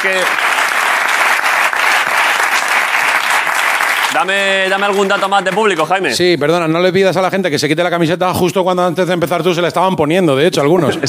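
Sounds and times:
speech: 0:00.0 - 0:00.5, 0:04.1 - 0:11.0
audience applause for two guests at a live show: 0:00.0 - 0:06.1.

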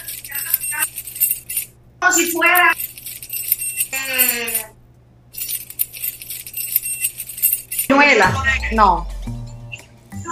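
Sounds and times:
keychain jangling: 0:00.0 - 0:04.8, 0:05.4 - 0:07.9
speech: 0:02.1 - 0:02.8, 0:04.2 - 0:04.7, 0:07.9 - 0:09.4.

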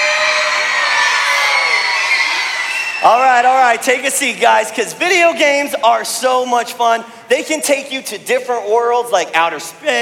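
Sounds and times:
children screaming and cheering: 0:00.0 - 0:03.2
speech: 0:03.0 - 0:09.9.

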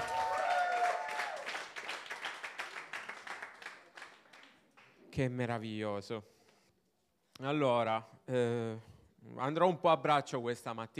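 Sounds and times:
people cheering: 0:00.0 - 0:02.3
audience applause: 0:00.0 - 0:04.9
speech: 0:05.2 - 0:06.4, 0:07.4 - 0:10.9.

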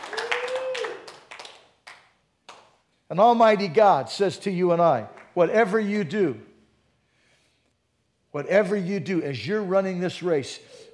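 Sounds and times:
crowd clapping and cheering: 0:00.0 - 0:02.6
sustained shout or whistle: 0:00.2 - 0:01.0
speech: 0:03.1 - 0:06.5, 0:08.4 - 0:10.8.

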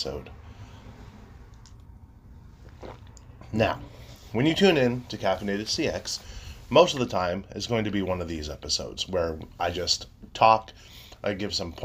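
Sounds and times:
speech: 0:00.0 - 0:00.4, 0:03.5 - 0:11.8
sipping coffee: 0:02.6 - 0:05.2.

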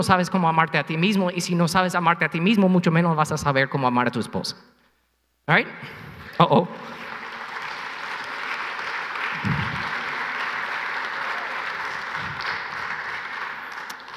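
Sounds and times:
speech: 0:00.0 - 0:04.8, 0:05.5 - 0:07.0
audience applause: 0:06.8 - 0:14.1.

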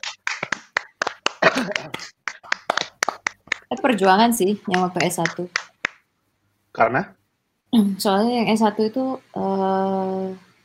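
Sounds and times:
hand clapping: 0:00.0 - 0:06.1
speech: 0:01.6 - 0:02.1, 0:03.7 - 0:05.6, 0:06.8 - 0:10.4.

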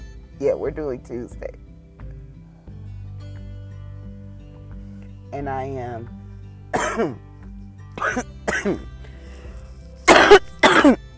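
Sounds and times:
speech: 0:00.4 - 0:01.7, 0:05.3 - 0:06.2, 0:07.0 - 0:07.3, 0:08.0 - 0:08.9, 0:10.8 - 0:11.0
person coughing and choking from smoking premium organic hemp: 0:06.7 - 0:07.2, 0:08.0 - 0:08.9, 0:10.1 - 0:11.0.

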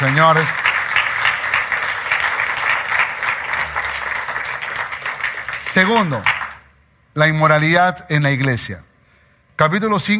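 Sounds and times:
speech: 0:00.0 - 0:00.7, 0:05.8 - 0:06.4, 0:07.2 - 0:08.9, 0:09.6 - 0:10.1
audience applause: 0:00.0 - 0:06.6.

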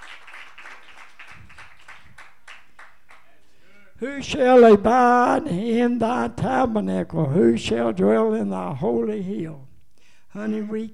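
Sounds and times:
audience hand clapping: 0:00.0 - 0:03.4
speech: 0:04.0 - 0:09.7, 0:10.3 - 0:10.9.

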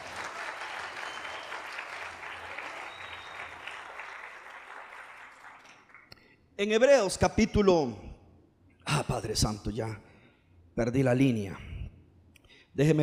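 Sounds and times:
audience applauding: 0:00.0 - 0:06.2
speech: 0:06.6 - 0:08.1, 0:09.2 - 0:10.1, 0:10.8 - 0:11.7, 0:12.8 - 0:13.0.

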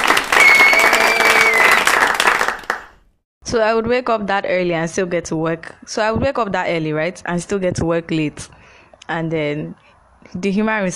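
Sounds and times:
audience applause: 0:00.0 - 0:03.0
speech: 0:03.5 - 0:10.9.

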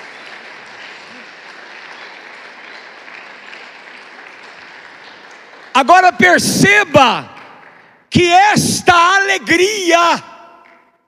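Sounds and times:
audience applause: 0:00.0 - 0:08.0
speech: 0:05.8 - 0:07.3, 0:08.1 - 0:10.3.

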